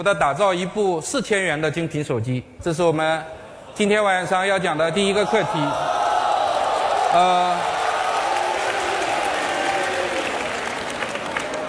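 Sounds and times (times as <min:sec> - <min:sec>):
speech: 0:00.0 - 0:06.0, 0:07.1 - 0:07.7
audience clamoring and heckling: 0:04.8 - 0:11.6
loud drawn-out shout: 0:05.1 - 0:10.6
scattered clapping: 0:06.7 - 0:11.6.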